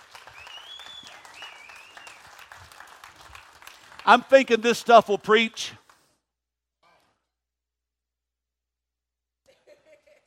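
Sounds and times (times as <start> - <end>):
church audience applauding in praise: 0.0 - 6.0
speech: 4.1 - 5.8.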